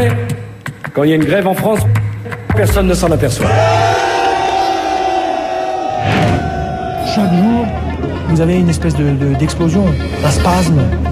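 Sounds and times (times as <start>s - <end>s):
speech: 1.0s - 2.0s, 2.6s - 4.2s, 7.1s - 11.1s
crowd of protesters shouting angrily: 3.4s - 8.3s.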